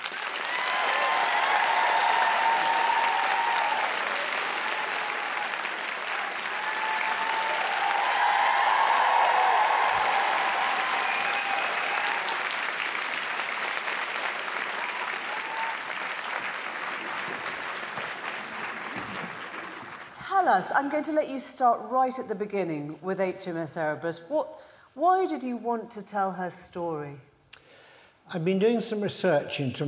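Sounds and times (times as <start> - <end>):
audience applause at a Palladium book event: 0.0 - 20.3
speech: 20.5 - 27.3, 28.3 - 29.8.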